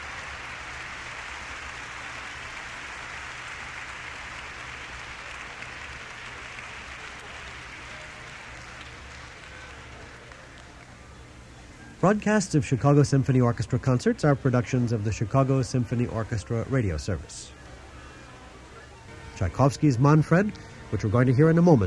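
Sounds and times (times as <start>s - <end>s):
orchestra hall audience applauding vigorously: 0.0s - 11.2s
speech: 12.0s - 17.6s, 19.4s - 21.8s.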